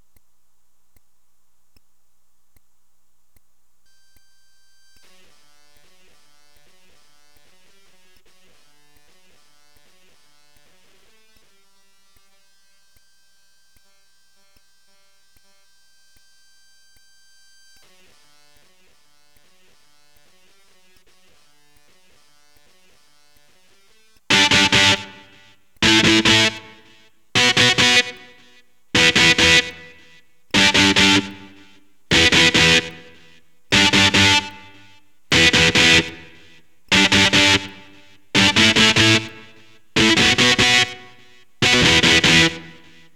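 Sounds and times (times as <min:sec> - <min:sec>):
electric guitar power chord: 0:24.3 - 0:43.1.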